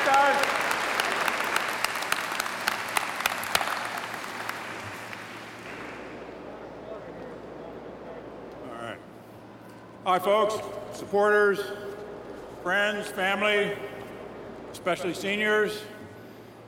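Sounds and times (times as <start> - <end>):
audience applause for a performing group: 0.0 - 6.2
speech: 10.1 - 11.8, 12.6 - 14.0, 14.8 - 15.9.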